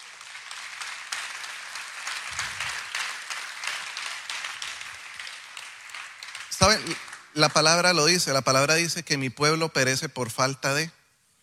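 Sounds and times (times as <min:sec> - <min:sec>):
applause: 0:00.0 - 0:09.0
speech: 0:06.6 - 0:11.0.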